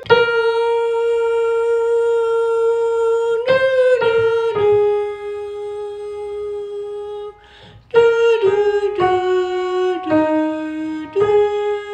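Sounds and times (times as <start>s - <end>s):
soprano singing choir part: 0.2s - 11.9s.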